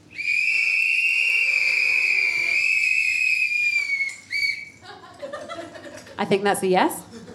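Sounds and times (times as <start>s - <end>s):
audience whistling in response: 0.2s - 4.8s
laughter: 4.8s - 6.4s, 7.0s - 7.3s
speech: 6.2s - 7.0s.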